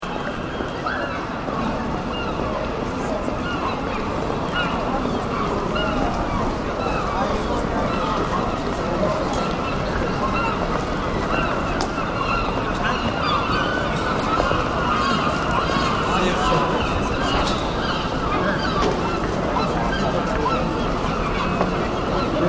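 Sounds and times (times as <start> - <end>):
gulls calling in a city: 0.0 - 22.4.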